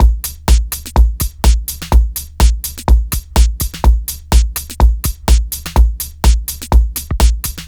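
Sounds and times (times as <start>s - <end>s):
electronic dance drum samples: 0.0s - 7.6s.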